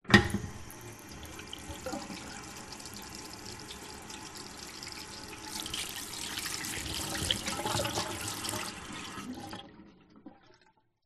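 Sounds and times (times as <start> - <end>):
public toilet push tap faucet running: 0.1 - 9.9
hands washing: 1.2 - 9.0.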